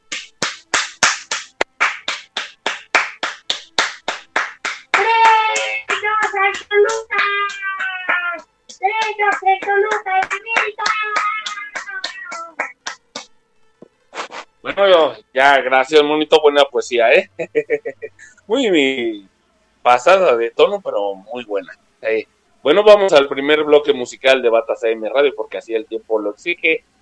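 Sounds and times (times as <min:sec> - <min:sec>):
hand clapping: 0:00.0 - 0:14.4
speech: 0:14.8 - 0:19.3, 0:19.9 - 0:26.9
laughter: 0:17.1 - 0:18.3.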